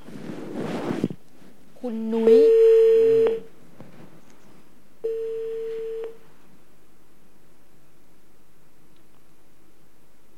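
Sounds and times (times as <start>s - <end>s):
speech: 1.8s - 2.6s
telephone line ringing tone: 2.3s - 3.5s, 5.0s - 6.2s.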